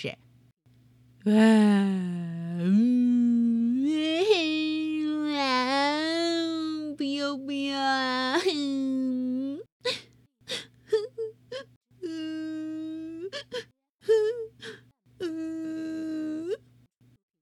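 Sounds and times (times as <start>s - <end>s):
speech: 0.0s - 0.2s, 1.2s - 3.2s
young child crying in a toilet: 2.8s - 16.6s.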